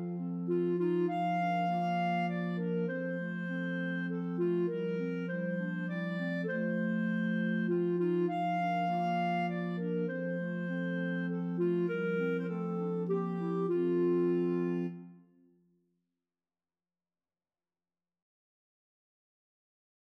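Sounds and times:
clarinet choir playing: 0.0s - 15.2s.

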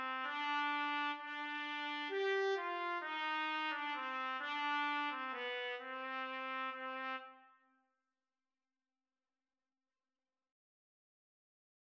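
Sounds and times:
trumpet duet: 0.0s - 7.6s.

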